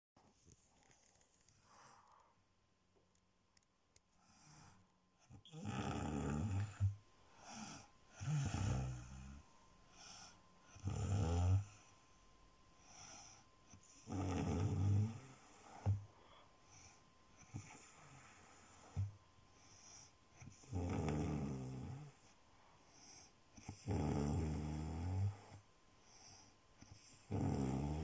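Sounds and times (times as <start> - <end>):
snoring: 4.2 - 11.9, 12.8 - 28.0.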